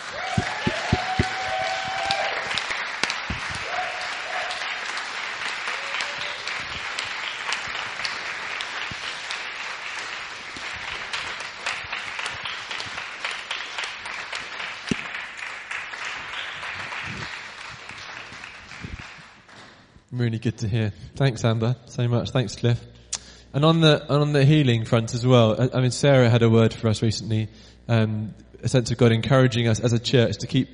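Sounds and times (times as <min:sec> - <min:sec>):
applause: 0:00.0 - 0:19.9
speech: 0:20.2 - 0:23.0, 0:23.6 - 0:30.7.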